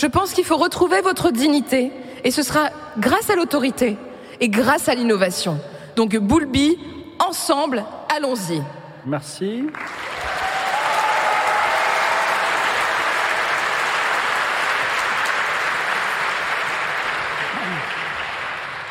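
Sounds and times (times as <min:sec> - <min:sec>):
speech: 0:00.0 - 0:10.2
sustained audience applause: 0:09.7 - 0:18.8.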